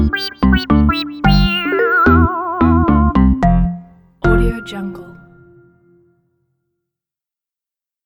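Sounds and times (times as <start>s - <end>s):
funny jumbled logo sound: 0.0s - 4.5s.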